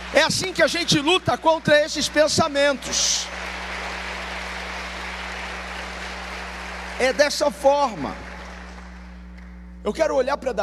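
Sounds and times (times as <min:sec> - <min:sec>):
audience applauding: 0:00.0 - 0:09.2
speech: 0:00.1 - 0:03.4, 0:07.0 - 0:08.3, 0:09.8 - 0:10.6.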